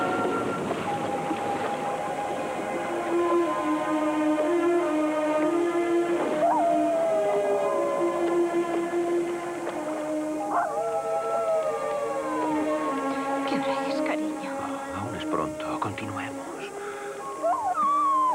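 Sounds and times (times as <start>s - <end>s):
dog howling: 0.0s - 15.5s, 16.4s - 18.3s.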